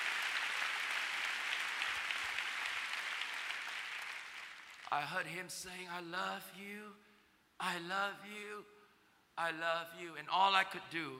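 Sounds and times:
audience clapping hands: 0.0 - 5.0
speech: 4.9 - 8.8, 9.4 - 11.1.

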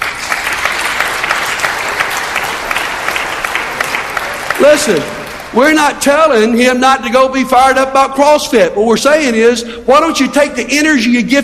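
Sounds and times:
crowd clapping: 0.0 - 6.0
speech: 4.6 - 11.4.

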